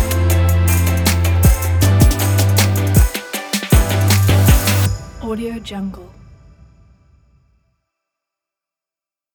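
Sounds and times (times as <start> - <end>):
smooth soul music: 0.0 - 5.0.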